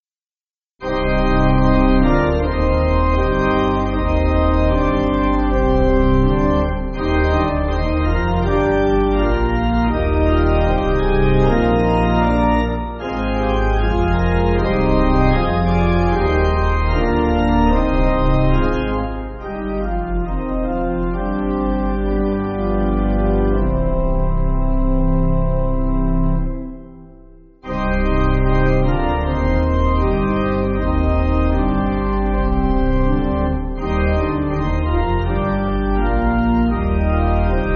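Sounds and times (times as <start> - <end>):
church pipe organ backing: 0.8 - 37.7.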